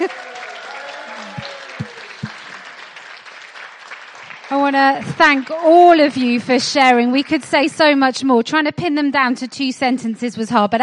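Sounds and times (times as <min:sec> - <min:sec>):
speech: 0:00.0 - 0:00.2, 0:04.7 - 0:10.8
people whooping and cheering: 0:00.0 - 0:02.8
crowd applause: 0:00.0 - 0:07.4.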